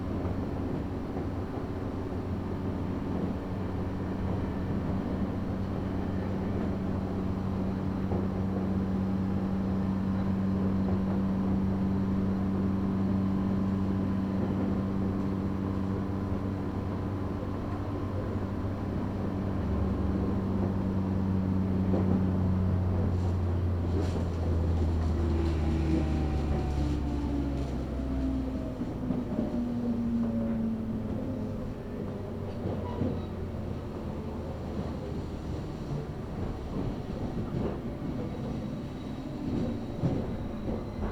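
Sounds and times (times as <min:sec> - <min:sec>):
train rumble on the Kagoshima and Chikuho Main Lines: 0:00.0 - 0:41.1
train motor whine: 0:23.9 - 0:30.4.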